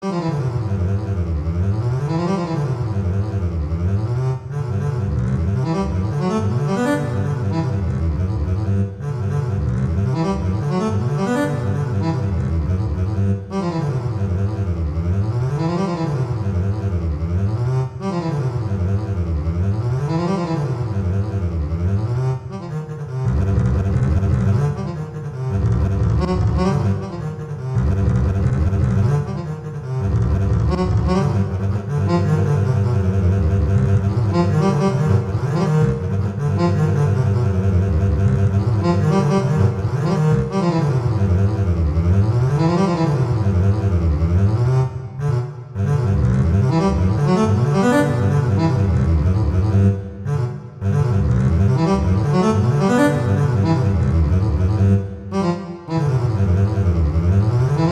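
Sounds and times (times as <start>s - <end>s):
waltz music: 0.0s - 57.9s.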